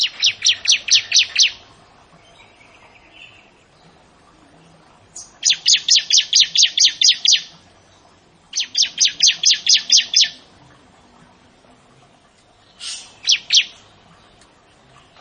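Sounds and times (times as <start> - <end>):
bar-winged prinia singing: 0.0 - 10.6, 12.0 - 15.1.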